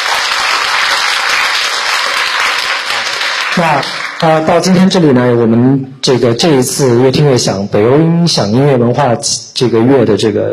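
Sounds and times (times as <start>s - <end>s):
audience applause: 0.0s - 4.5s
speech: 3.6s - 10.5s.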